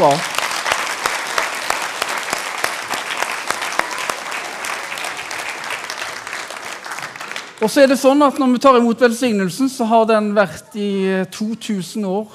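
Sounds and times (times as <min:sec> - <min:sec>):
speech: 0:00.0 - 0:00.3, 0:07.6 - 0:12.3
sharp individual claps: 0:00.0 - 0:07.6
audience applause: 0:00.0 - 0:07.7.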